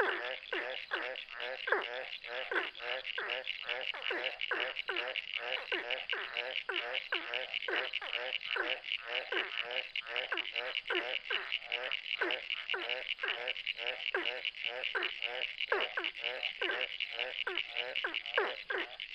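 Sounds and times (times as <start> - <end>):
ornate burrowing frog: 0.0 - 19.1.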